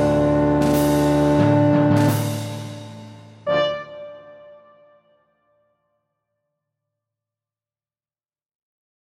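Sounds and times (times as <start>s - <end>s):
tuba melody: 0.0s - 5.2s.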